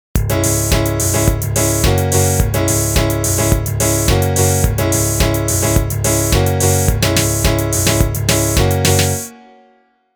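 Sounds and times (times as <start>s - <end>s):
musical riff: 0.2s - 9.4s.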